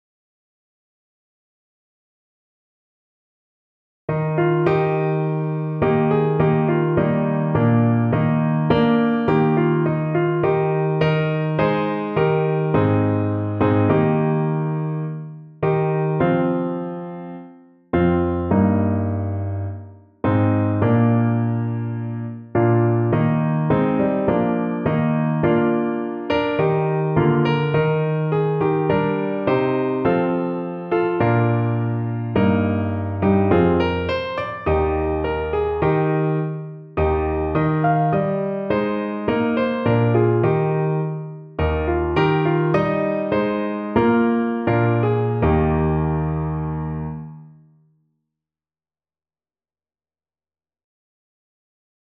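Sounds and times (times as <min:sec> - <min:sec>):
piano: 0:04.1 - 0:47.8.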